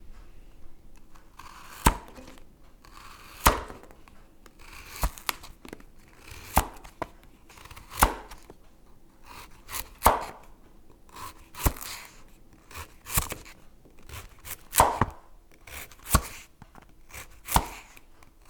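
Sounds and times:
chopping: 0:01.4 - 0:08.6, 0:09.3 - 0:10.5, 0:11.1 - 0:16.5, 0:17.1 - 0:18.0.

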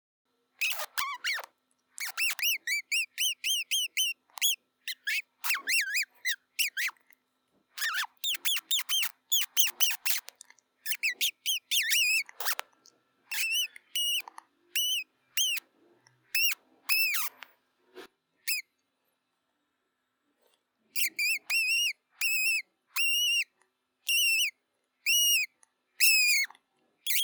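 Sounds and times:
mouse squeaking: 0:00.6 - 0:07.0, 0:07.8 - 0:12.6, 0:13.3 - 0:15.6, 0:16.3 - 0:17.5, 0:18.4 - 0:18.7, 0:20.9 - 0:27.2.

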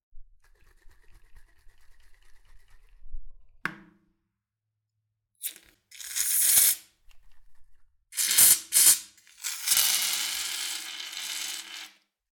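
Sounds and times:
shaving cream can shaking: 0:00.4 - 0:03.1, 0:05.4 - 0:06.8, 0:08.2 - 0:12.0
foam shaving cream spraying: 0:05.4 - 0:06.9, 0:08.2 - 0:12.0.

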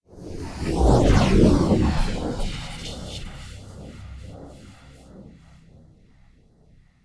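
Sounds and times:
rotating hissy whoosh passing: 0:00.5 - 0:05.5.

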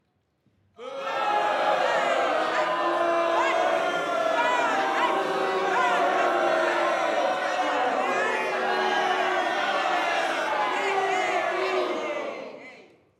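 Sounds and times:
angry crowd booing: 0:00.8 - 0:12.7.

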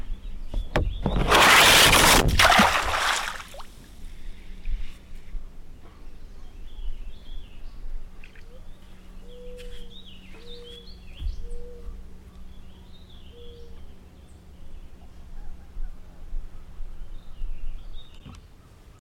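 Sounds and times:
big splashes jumping into water down a rock slide on Manitoulin Island: 0:01.1 - 0:03.8.

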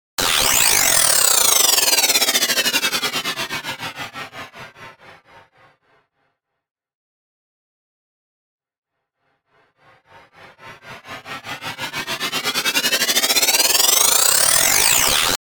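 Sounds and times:
chuffing sweep: 0:00.8 - 0:06.0, 0:09.2 - 0:15.4.

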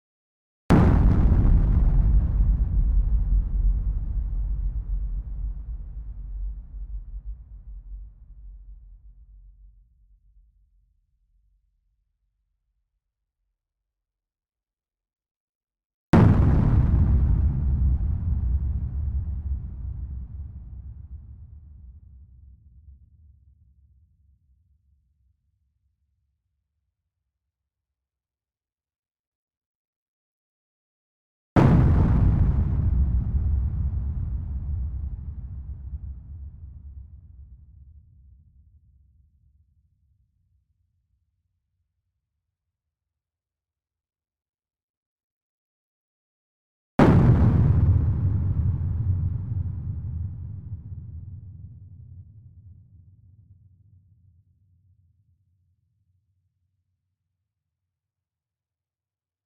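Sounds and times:
clean explosions: 0:00.7 - 0:06.9, 0:16.2 - 0:20.1, 0:31.6 - 0:36.3, 0:47.0 - 0:51.3.

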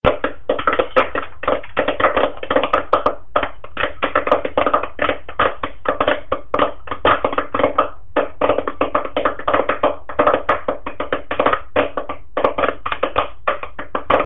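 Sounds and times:
popcorn: 0:00.0 - 0:14.2.

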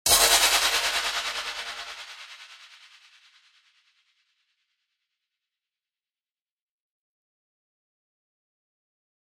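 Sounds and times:
stab transition effect: 0:00.1 - 0:02.8.

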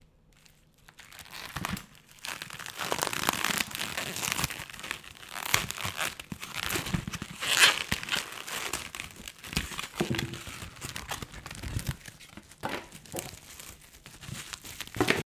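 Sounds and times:
plastic ripping: 0:00.4 - 0:15.2.

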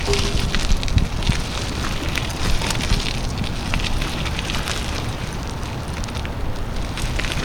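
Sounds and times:
tire rolling on gravel: 0:00.0 - 0:07.4.

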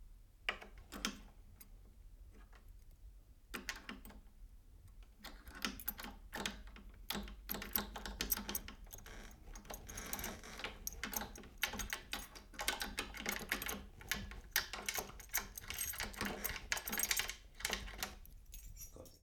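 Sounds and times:
keys in wooden door, trying to open door: 0:05.0 - 0:19.2.

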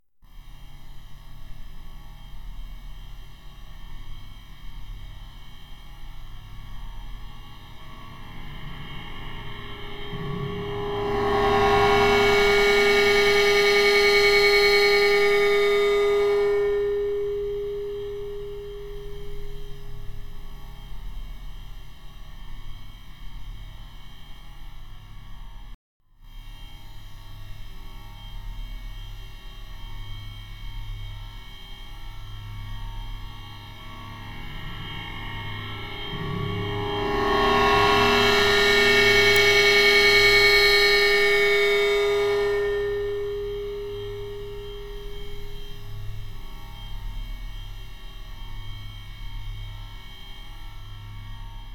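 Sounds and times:
guitar feedback with reverb in pseudostereo: 0:07.8 - 0:20.5, 0:33.8 - 0:47.0.

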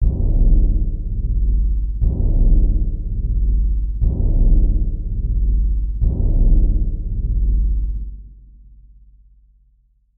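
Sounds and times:
cinematic lead-in: 0:00.0 - 0:08.0.

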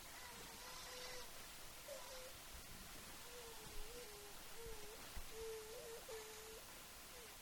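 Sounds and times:
fussy baby: 0:00.1 - 0:02.4, 0:03.2 - 0:07.3.

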